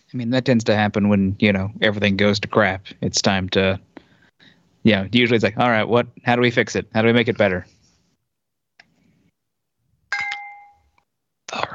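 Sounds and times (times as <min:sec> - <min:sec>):
speech: 0:00.1 - 0:03.9, 0:04.8 - 0:07.8
tapped wine glass ringing: 0:10.1 - 0:11.0.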